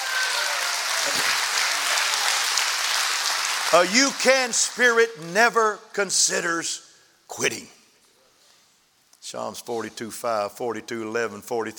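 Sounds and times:
audience clapping hands: 0:00.0 - 0:05.6
speech: 0:03.7 - 0:07.8, 0:09.3 - 0:11.7.

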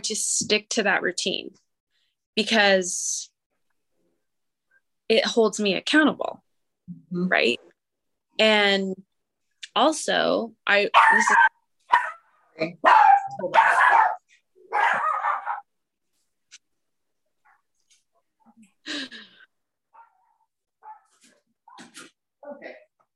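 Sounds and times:
speech: 0:00.0 - 0:01.6, 0:02.4 - 0:03.3, 0:05.1 - 0:06.4, 0:07.1 - 0:07.7, 0:08.4 - 0:09.1, 0:09.8 - 0:11.5, 0:12.6 - 0:14.1, 0:18.9 - 0:19.2
dogs barking in a home: 0:10.9 - 0:15.7, 0:19.9 - 0:21.9.

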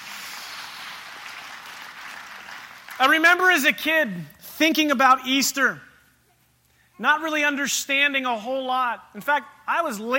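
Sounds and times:
audience clapping: 0:00.0 - 0:03.4
speech: 0:03.0 - 0:05.9, 0:07.0 - 0:10.1.

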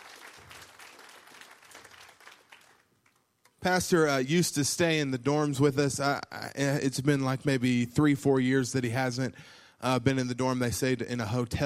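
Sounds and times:
audience hand clapping: 0:00.0 - 0:03.6
speech: 0:03.6 - 0:11.6.

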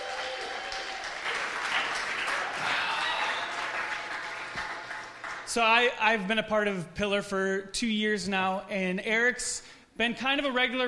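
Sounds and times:
audience applause welcoming a speaker: 0:00.0 - 0:05.5
speech: 0:05.5 - 0:10.8.

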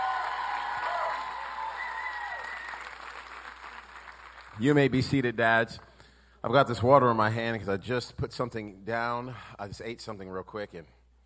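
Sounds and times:
audience clapping for fathers at a Father's Day gathering: 0:00.0 - 0:04.7
speech: 0:04.6 - 0:11.0.

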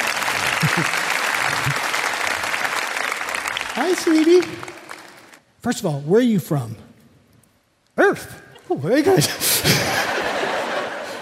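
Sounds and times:
audience applause: 0:00.0 - 0:05.4
laughter: 0:00.3 - 0:01.8, 0:08.6 - 0:11.1
speech: 0:00.6 - 0:01.9, 0:03.8 - 0:04.8, 0:05.6 - 0:06.9, 0:08.0 - 0:10.2.

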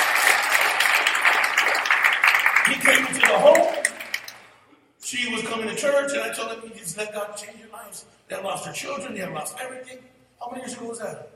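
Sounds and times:
audience clapping: 0:00.0 - 0:04.6
speech: 0:02.7 - 0:03.8, 0:05.1 - 0:11.3.

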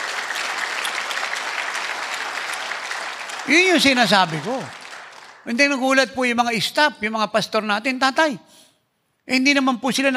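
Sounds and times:
applause: 0:00.0 - 0:06.2
speech: 0:03.4 - 0:04.8, 0:05.4 - 0:08.6, 0:09.3 - 0:10.1.

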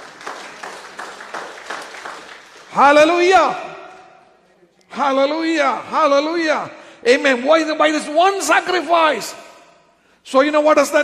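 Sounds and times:
audience clapping: 0:00.0 - 0:03.5
speech: 0:02.8 - 0:03.6, 0:05.0 - 0:09.4, 0:10.3 - 0:11.0.

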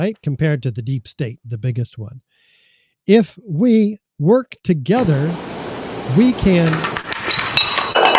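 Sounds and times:
speech: 0:00.0 - 0:02.5, 0:03.1 - 0:05.5, 0:06.1 - 0:06.9
dominoes toppling: 0:06.6 - 0:08.0.

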